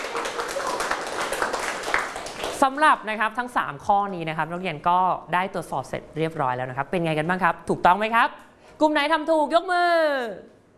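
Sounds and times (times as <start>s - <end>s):
classroom students clapping for a classmate during a math lesson: 0.0s - 2.6s
speech: 2.6s - 10.6s.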